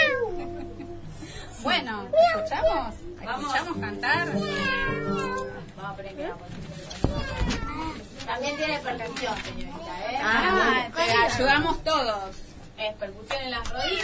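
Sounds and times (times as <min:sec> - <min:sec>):
child imitating a cat meowing: 0:00.0 - 0:00.6, 0:04.3 - 0:05.6, 0:13.8 - 0:14.0
speech: 0:01.6 - 0:14.0.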